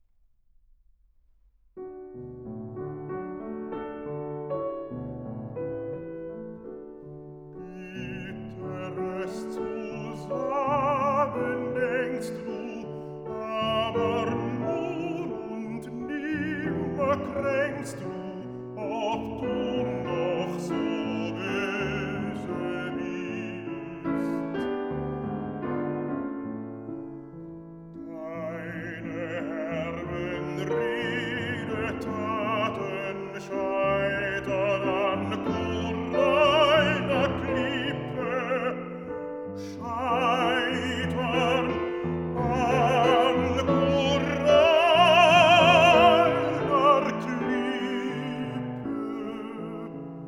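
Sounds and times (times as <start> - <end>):
piano: 1.7 - 50.2
person singing: 7.6 - 24.9, 28.0 - 50.2.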